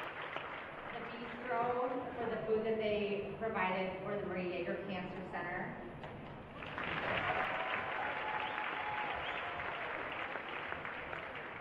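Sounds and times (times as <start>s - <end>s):
audience applause: 0.0s - 1.7s, 6.5s - 11.5s
speech: 1.1s - 6.0s.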